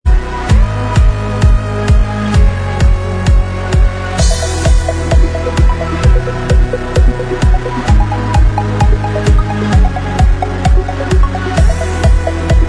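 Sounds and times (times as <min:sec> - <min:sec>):
dance remix instrumental track: 0:00.1 - 0:12.6.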